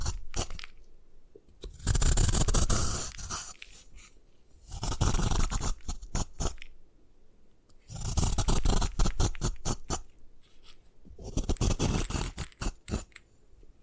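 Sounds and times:
gym chalk being crushed and scraped: 0.0 - 0.8, 1.8 - 6.7, 7.9 - 13.2.

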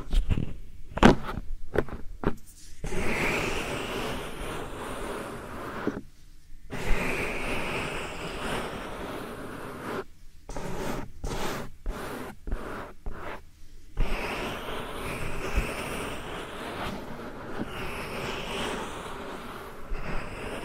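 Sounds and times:
soft powder rubbed against the ears: 0.0 - 20.6.

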